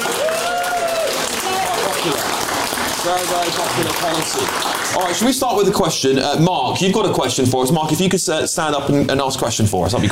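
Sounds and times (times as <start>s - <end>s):
audience applause in the room: 0.0s - 5.9s
speech: 2.0s - 2.3s, 3.0s - 10.1s.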